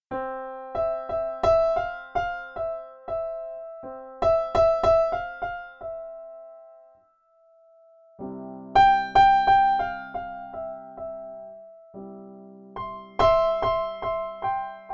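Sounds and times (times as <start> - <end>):
Pianoteq baby grand piano: 0.1 - 14.9.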